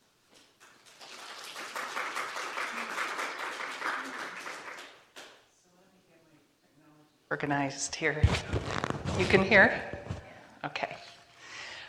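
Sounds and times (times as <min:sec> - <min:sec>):
forum audience in Los Alamos applauding two speakers: 0:00.6 - 0:05.2
speech: 0:07.3 - 0:10.0.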